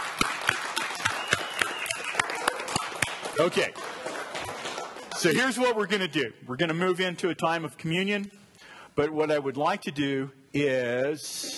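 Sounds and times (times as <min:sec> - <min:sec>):
round of applause: 0:00.0 - 0:05.6
speech: 0:03.4 - 0:03.8, 0:05.2 - 0:08.4, 0:09.0 - 0:11.5.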